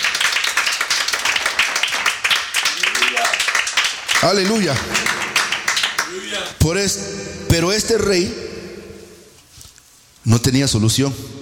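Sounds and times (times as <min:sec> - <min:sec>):
audience clapping: 0:00.0 - 0:06.6
speech: 0:04.2 - 0:05.1, 0:06.3 - 0:08.6, 0:10.2 - 0:11.3.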